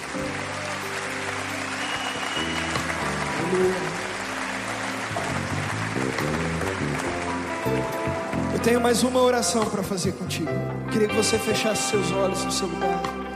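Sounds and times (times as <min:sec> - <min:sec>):
audience applauding: 0:00.0 - 0:09.4
speech: 0:03.5 - 0:03.9, 0:08.6 - 0:13.2.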